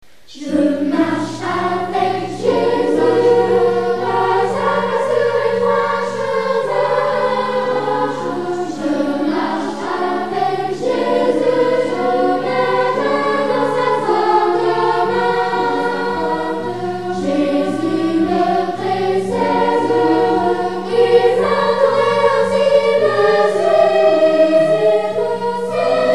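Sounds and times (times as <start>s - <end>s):
religious song: 0.1s - 26.1s.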